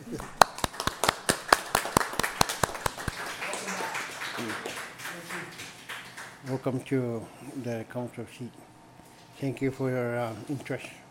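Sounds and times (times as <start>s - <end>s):
people applauding: 0.0s - 6.9s
speech: 6.5s - 8.6s, 9.4s - 11.0s.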